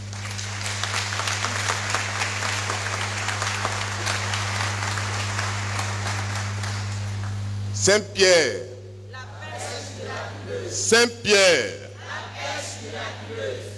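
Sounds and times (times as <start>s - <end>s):
audience applauding: 0.0s - 7.7s
speech: 7.9s - 8.7s, 10.8s - 11.8s.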